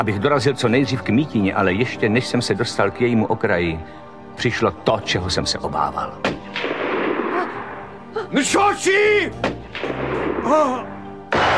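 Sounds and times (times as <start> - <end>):
speech: 0.0 - 6.7, 8.2 - 10.9
rifle gunshot: 6.3 - 7.9, 9.4 - 10.7, 11.3 - 11.5.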